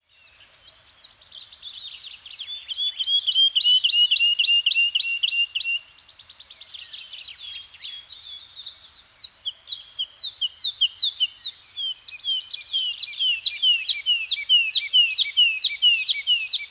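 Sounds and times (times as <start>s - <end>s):
birds singing in a Scandinavian forest: 0.0s - 16.7s.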